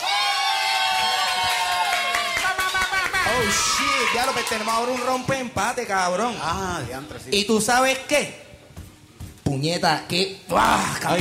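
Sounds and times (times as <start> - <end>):
audience applause: 0.0 - 5.4
speech: 3.4 - 8.4, 9.6 - 11.1.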